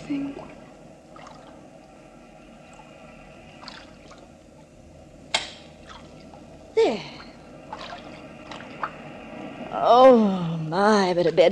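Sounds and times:
ocean waves: 0.0s - 11.5s
speech: 0.1s - 0.6s, 6.9s - 7.1s, 9.8s - 11.5s.

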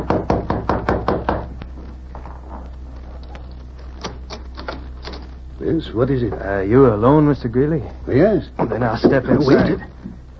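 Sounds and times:
knocking on a door: 0.0s - 1.5s
speech: 5.7s - 10.0s.

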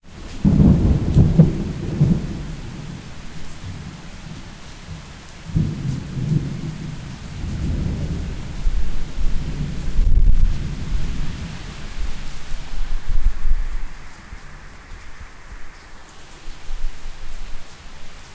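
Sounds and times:
rain in Krizevci: 0.0s - 18.3s.

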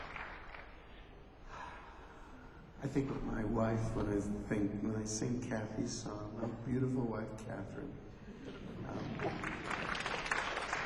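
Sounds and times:
audience applause: 0.0s - 0.8s, 8.9s - 10.8s
speech: 2.8s - 9.8s.

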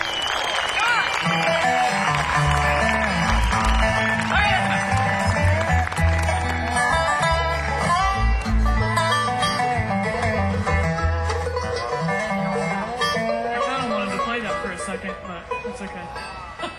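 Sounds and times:
audience clapping and cheering: 0.0s - 8.8s
band playing with bass line and melodic instruments: 0.0s - 16.7s.

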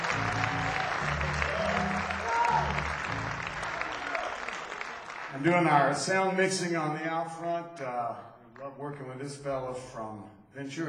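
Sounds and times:
audience applause: 0.0s - 6.0s
speech: 5.4s - 10.8s.

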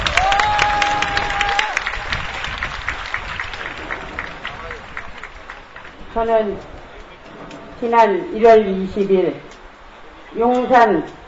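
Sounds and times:
crowd applauding: 0.0s - 6.1s
speech: 6.2s - 6.8s, 7.8s - 9.5s, 10.3s - 11.2s.

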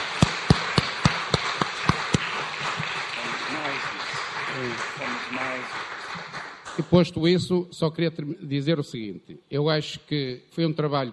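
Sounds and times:
applause: 0.0s - 7.4s
speech: 6.8s - 11.1s.

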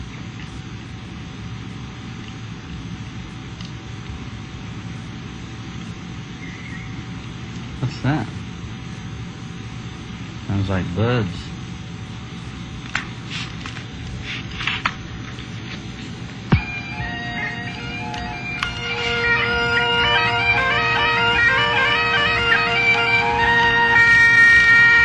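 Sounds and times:
speech: 8.0s - 8.4s, 10.6s - 11.6s
bagpipes playing: 16.5s - 25.0s.

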